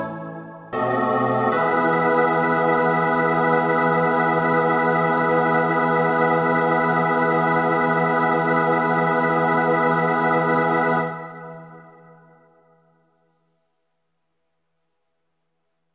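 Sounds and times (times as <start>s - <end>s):
soprano choir: 0.0s - 12.6s.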